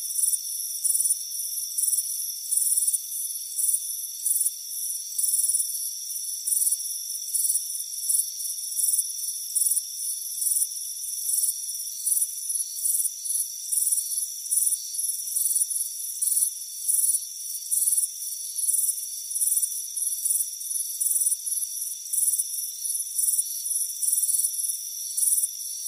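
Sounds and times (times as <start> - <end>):
crickets chirping: 0.0 - 25.8.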